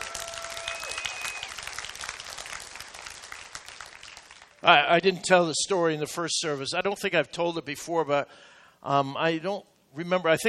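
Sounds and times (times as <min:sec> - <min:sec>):
audience clapping: 0:00.0 - 0:04.8
speech: 0:04.6 - 0:10.4.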